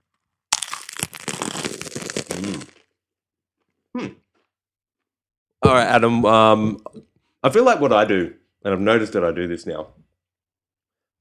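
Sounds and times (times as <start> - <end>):
crunchy bite of folded naan: 0.1 - 3.0
speech: 4.0 - 4.2, 5.7 - 10.0.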